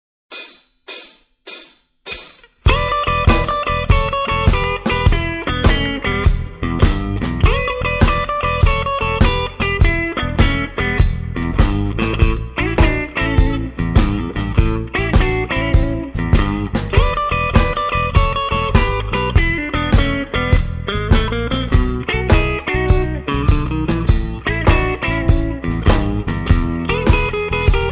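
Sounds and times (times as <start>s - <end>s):
blues jazz music: 1.5s - 27.9s.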